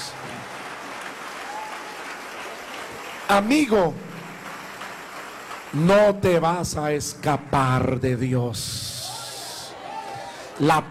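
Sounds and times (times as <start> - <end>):
loud applause from a group: 0.0 - 7.8, 8.8 - 10.8
speech: 3.3 - 4.0, 5.7 - 9.0, 10.6 - 10.8.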